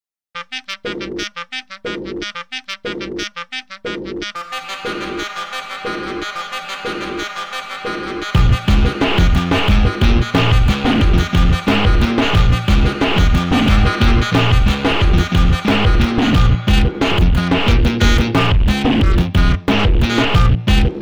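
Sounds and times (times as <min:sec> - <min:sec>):
clarinet: 0:00.4 - 0:20.9.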